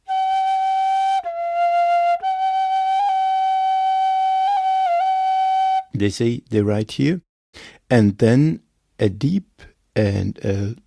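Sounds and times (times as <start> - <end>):
bird song with loud flute-like tones: 0.0 - 5.9
speech: 6.0 - 10.8.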